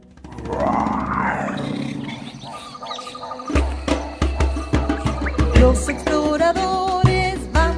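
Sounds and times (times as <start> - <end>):
lion roaring in a jungle scene: 0.3 - 5.6
sharp percussive knocks: 3.4 - 7.6
speech: 5.6 - 7.0.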